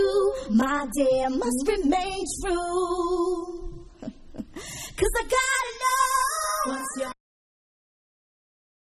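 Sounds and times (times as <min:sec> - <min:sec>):
a cappella singing: 0:00.0 - 0:04.1, 0:04.9 - 0:07.2.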